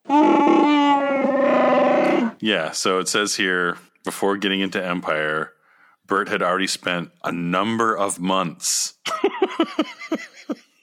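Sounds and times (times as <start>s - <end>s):
Wookiee howl sound effect: 0.0s - 2.4s
speech: 2.4s - 10.6s
laughter: 9.1s - 10.7s.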